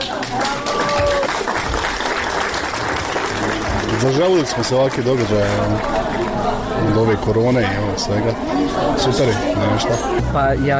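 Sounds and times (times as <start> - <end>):
audience applause at a cultural event: 0.0 - 7.2
speech: 4.0 - 10.7.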